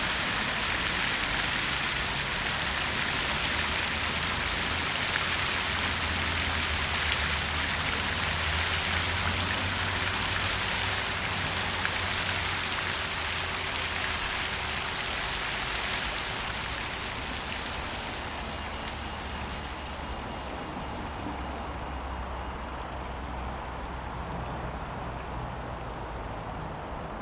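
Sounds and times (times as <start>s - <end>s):
park soundscape: 0.0s - 27.1s.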